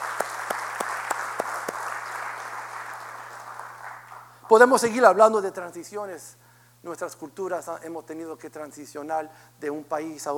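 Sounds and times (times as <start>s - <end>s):
audience applause: 0.0s - 4.5s
speech: 4.5s - 10.3s.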